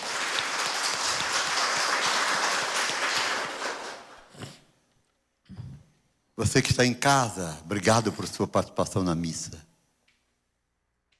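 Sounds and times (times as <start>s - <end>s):
audience applause: 0.0s - 4.4s
speech: 6.4s - 9.7s.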